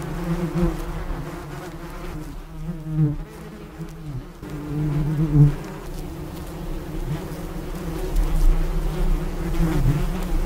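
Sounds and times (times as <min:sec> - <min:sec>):
bee buzzing: 0:00.0 - 0:10.4.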